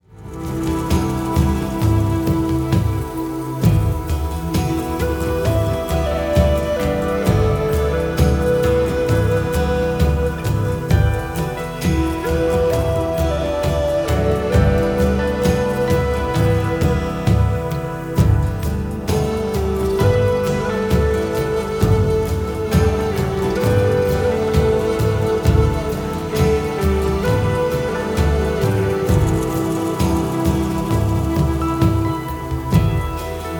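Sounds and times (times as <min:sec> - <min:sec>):
sacred drum: 0:00.0 - 0:33.5.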